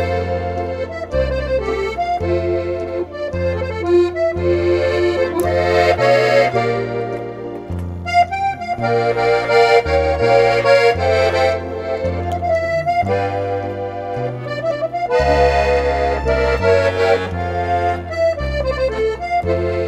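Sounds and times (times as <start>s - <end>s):
French band playing: 0.0s - 19.8s.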